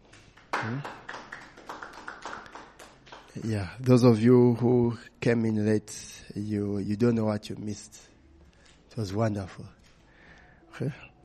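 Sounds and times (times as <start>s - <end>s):
audience hand clapping: 0.0s - 4.1s
speech: 0.6s - 1.0s, 3.4s - 8.1s, 9.0s - 9.8s, 10.8s - 11.1s.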